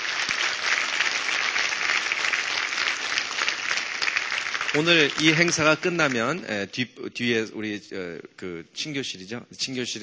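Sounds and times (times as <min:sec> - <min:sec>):
crowd applause: 0:00.0 - 0:06.2
speech: 0:04.7 - 0:10.0.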